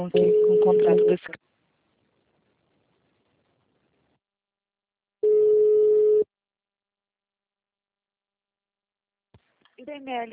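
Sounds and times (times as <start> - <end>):
speech: 0.0 - 1.5, 9.8 - 10.3
phone line tone after a dropped call: 0.1 - 1.2, 5.2 - 6.2.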